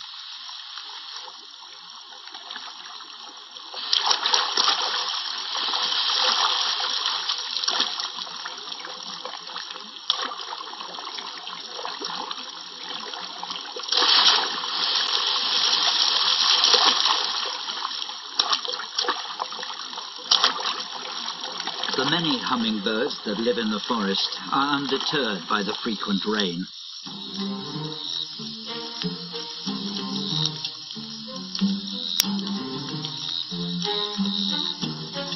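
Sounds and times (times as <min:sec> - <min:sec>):
water splashing in a forest stream: 0:00.0 - 0:35.3
speech: 0:22.6 - 0:26.8.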